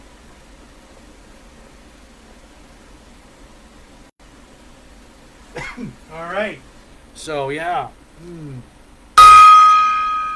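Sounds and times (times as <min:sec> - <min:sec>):
speech: 0:05.6 - 0:08.8
gong struck and ringing: 0:09.2 - 0:10.3.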